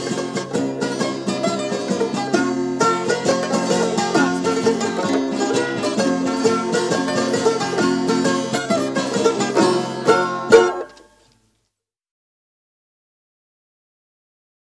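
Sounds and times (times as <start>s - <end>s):
chitarra battente playing a tarantella: 0.0s - 11.4s
mandolin playing a tarantella: 0.0s - 11.5s.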